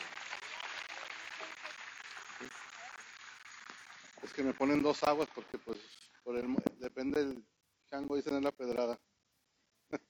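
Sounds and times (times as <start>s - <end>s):
audience applause: 0.0s - 5.7s
speech: 2.4s - 2.6s, 4.3s - 9.1s.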